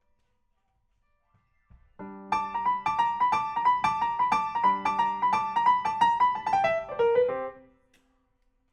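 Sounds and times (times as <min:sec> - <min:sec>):
rock and roll piano: 0:02.0 - 0:07.6.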